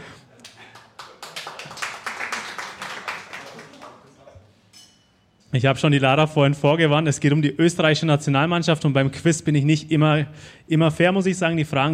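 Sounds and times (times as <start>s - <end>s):
people clapping hands: 0.4s - 4.4s
speech: 5.5s - 11.9s.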